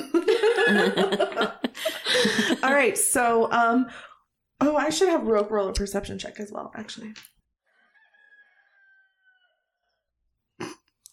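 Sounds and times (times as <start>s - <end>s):
laughter: 0.0s - 2.8s
speech: 0.7s - 1.6s, 2.3s - 7.3s
rooster crowing: 7.7s - 10.0s.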